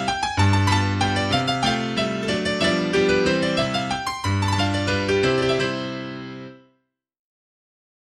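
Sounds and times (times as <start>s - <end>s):
mazurka in C major played vivace: 0.0s - 6.5s.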